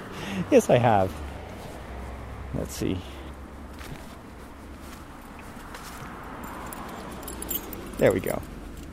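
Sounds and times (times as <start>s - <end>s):
speech: 0.4s - 1.2s, 2.5s - 3.1s, 8.0s - 8.5s
bunch of keys jangling: 6.4s - 8.9s.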